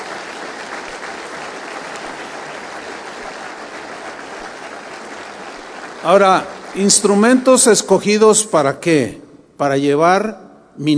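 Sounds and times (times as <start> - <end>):
audience applause: 0.0 - 7.8
speech: 6.0 - 10.9.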